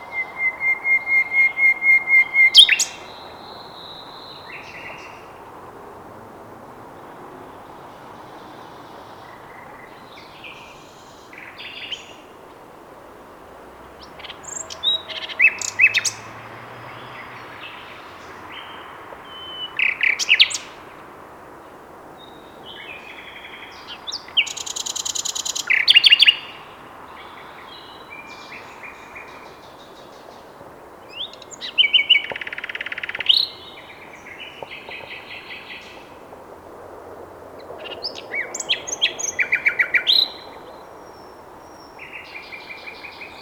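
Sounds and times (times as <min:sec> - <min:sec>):
common nightingale song: 0:00.0 - 0:05.5, 0:06.9 - 0:12.4, 0:13.8 - 0:20.8, 0:21.7 - 0:36.2, 0:37.6 - 0:43.3.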